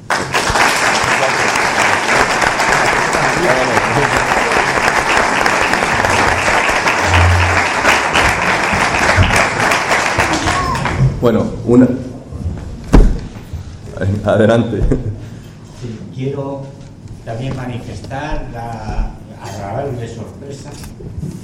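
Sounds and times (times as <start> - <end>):
audience applause: 0.0 - 11.0
speech: 11.2 - 12.1, 14.2 - 15.1, 16.2 - 21.4.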